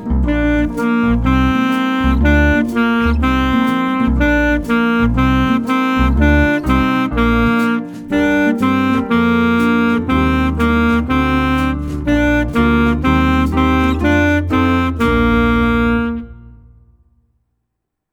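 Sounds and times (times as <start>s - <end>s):
saxophone: 0.1s - 16.7s.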